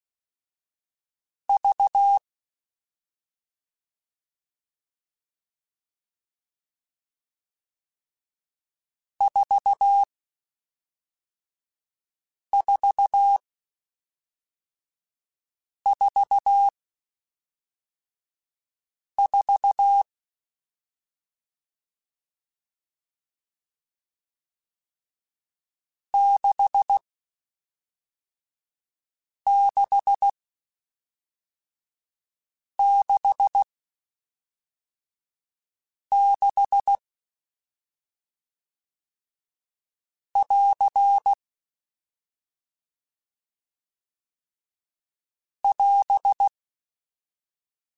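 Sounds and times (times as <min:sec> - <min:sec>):
CW Morse code groups in staccato beeps: 0:01.6 - 0:02.2, 0:09.3 - 0:10.1, 0:12.6 - 0:13.4, 0:15.9 - 0:16.7, 0:19.2 - 0:20.0, 0:26.2 - 0:27.0, 0:29.5 - 0:30.3, 0:32.8 - 0:33.7, 0:36.1 - 0:37.0, 0:40.4 - 0:41.4, 0:45.7 - 0:46.5.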